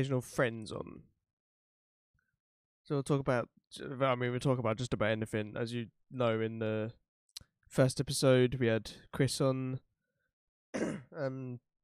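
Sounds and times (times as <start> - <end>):
speech: 0.0 - 1.1, 2.9 - 7.0, 7.7 - 9.9, 10.7 - 11.7
throat clearing: 10.8 - 11.4.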